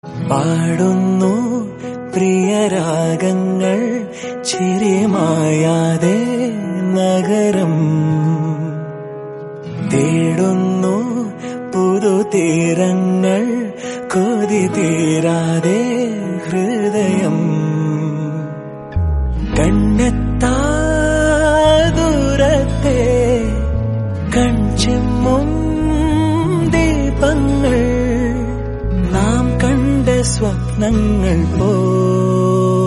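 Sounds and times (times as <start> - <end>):
love song: 0.0 - 32.8.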